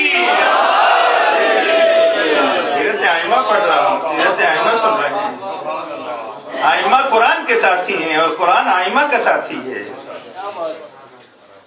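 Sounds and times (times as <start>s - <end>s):
crowd chanting religious slogan: 0.0s - 5.2s
speech: 7.1s - 10.9s.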